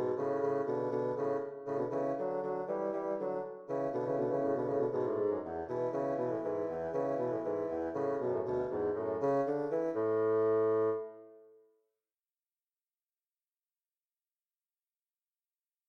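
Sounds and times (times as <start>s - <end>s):
two bassoons playing a duet: 0.0s - 11.2s.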